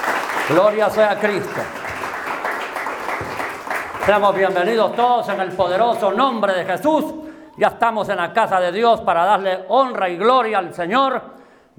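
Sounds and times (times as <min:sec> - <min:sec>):
audience applauding: 0:00.0 - 0:06.8
speech: 0:00.5 - 0:01.8, 0:04.0 - 0:11.7.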